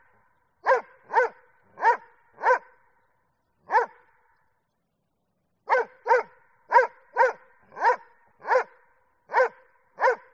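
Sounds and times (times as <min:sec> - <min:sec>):
Doberman barking: 0:00.6 - 0:02.7, 0:03.7 - 0:04.0, 0:05.7 - 0:10.3.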